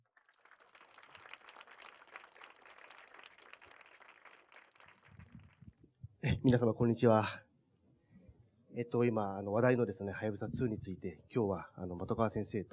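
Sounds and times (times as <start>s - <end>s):
audience applause welcoming speakers: 0.1s - 5.6s
speech: 6.4s - 7.4s, 8.8s - 12.7s.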